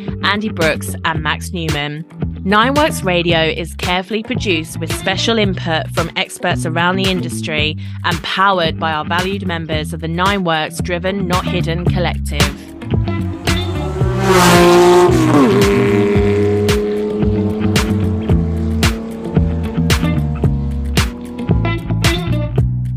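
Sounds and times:
speech: 0.0s - 13.2s
3-litre RSR race car engine roaring past: 11.3s - 22.8s.

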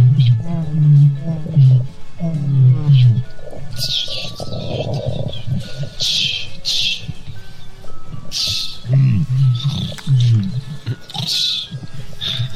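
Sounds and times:
people vocally imitating animal growls: 0.0s - 7.4s, 8.1s - 12.5s
breathy hisses: 3.0s - 12.5s.

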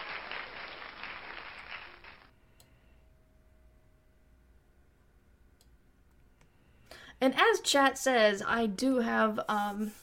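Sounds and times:
canned applause from a yay button sound effect: 0.0s - 2.3s
speech: 7.2s - 10.0s.

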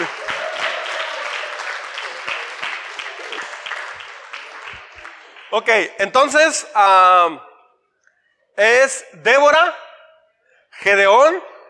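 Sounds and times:
audience applause: 0.0s - 5.7s
speech: 5.5s - 7.5s, 8.6s - 9.8s, 10.8s - 11.5s.

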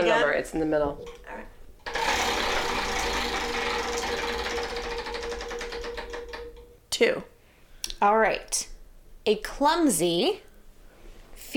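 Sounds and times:
speech: 0.3s - 1.5s, 7.0s - 7.3s, 8.0s - 10.5s
boardwalk-style prize wheel spinning: 1.8s - 6.8s.

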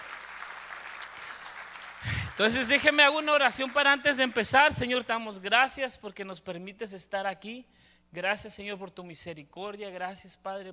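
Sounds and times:
audience applause: 0.0s - 4.0s
speech: 2.4s - 10.7s.

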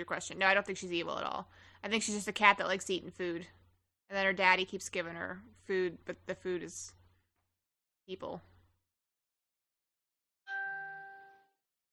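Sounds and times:
speech: 0.0s - 7.0s, 8.1s - 8.5s
Facebook notification chime: 10.5s - 11.6s.

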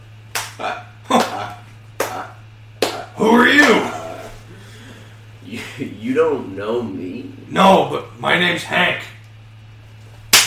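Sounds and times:
low steady hum: 0.0s - 10.4s
hard slaps: 0.3s - 4.0s
speech: 0.6s - 1.6s, 6.1s - 9.1s.

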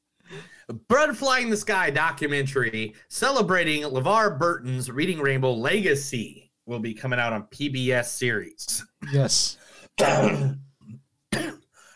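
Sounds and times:
speech: 0.9s - 11.0s
harsh coughing after beer went down the wrong pipe: 10.0s - 10.6s, 11.3s - 11.6s.

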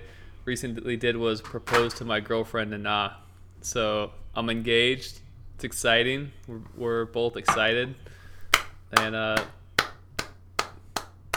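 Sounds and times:
speech: 0.5s - 8.2s, 8.9s - 9.6s
hand clapping: 8.5s - 11.3s.

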